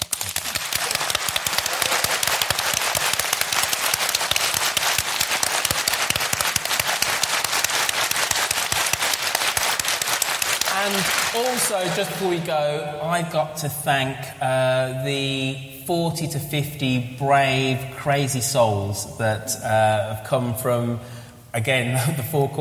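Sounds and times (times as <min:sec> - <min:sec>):
audience applause: 0:00.0 - 0:12.5
speech: 0:11.7 - 0:22.5.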